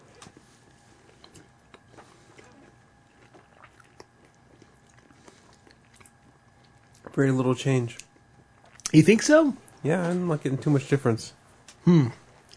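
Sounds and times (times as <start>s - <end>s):
chewing pineapple during a tasting: 0.0s - 9.0s, 11.6s - 12.5s
speech: 7.2s - 8.0s, 8.9s - 12.2s.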